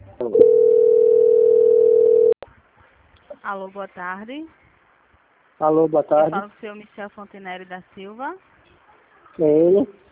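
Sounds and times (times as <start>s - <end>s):
speech: 0.2s - 0.6s, 3.5s - 4.6s, 5.6s - 8.5s, 9.4s - 10.0s
telephone call transfer tone: 0.2s - 2.4s.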